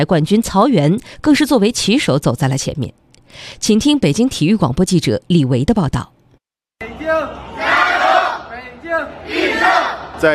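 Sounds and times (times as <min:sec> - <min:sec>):
speech: 0:00.0 - 0:06.2, 0:08.9 - 0:10.3
Beijing sports delegation chanting together at an opening ceremony: 0:06.8 - 0:10.3.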